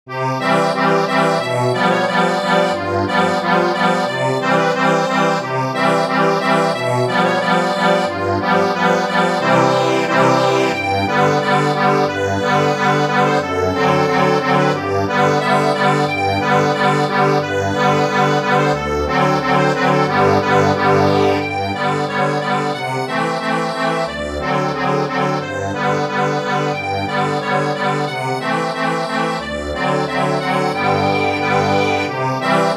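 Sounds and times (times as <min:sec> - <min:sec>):
accordion: 0:00.1 - 0:32.7.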